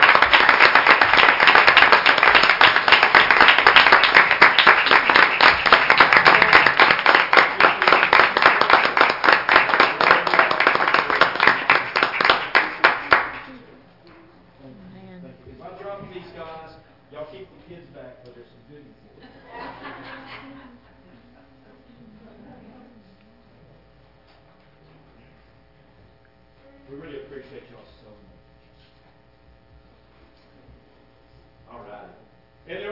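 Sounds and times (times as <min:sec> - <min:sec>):
audience clapping: 0:00.0 - 0:13.6
laughter: 0:06.0 - 0:07.0, 0:19.1 - 0:22.8.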